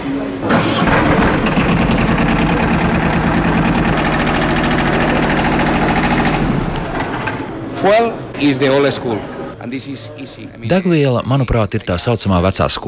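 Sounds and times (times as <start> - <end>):
diesel engine running, tractor-like: 0.4 - 7.7
speech: 7.8 - 12.8.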